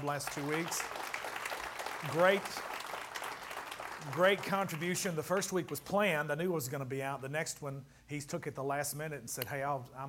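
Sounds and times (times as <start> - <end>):
speech: 0.0 - 1.1, 2.0 - 2.7, 4.0 - 10.0
audience applause: 0.0 - 5.0.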